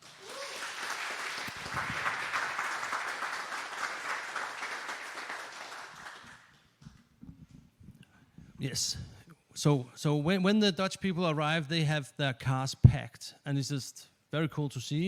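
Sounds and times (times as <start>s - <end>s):
audience applause: 0.0s - 6.6s
speech: 8.6s - 15.0s.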